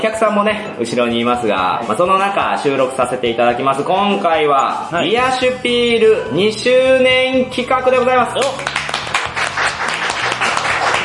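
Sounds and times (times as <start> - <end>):
speech: 0.0 - 8.8
audience applause: 8.6 - 11.0.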